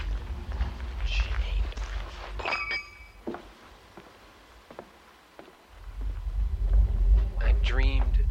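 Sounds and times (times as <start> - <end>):
footsteps on a sidewalk: 0.0 - 2.4, 3.2 - 8.2.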